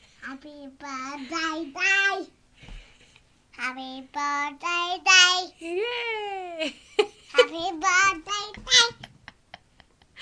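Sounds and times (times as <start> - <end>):
two-year-old child singing a birthday song: 0.3 - 2.3, 3.6 - 5.6, 7.4 - 9.0.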